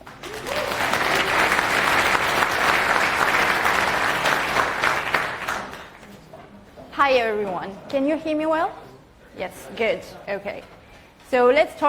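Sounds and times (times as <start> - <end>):
audience applause for speaker: 0.0 - 6.0
speech: 7.1 - 8.8, 9.4 - 11.8.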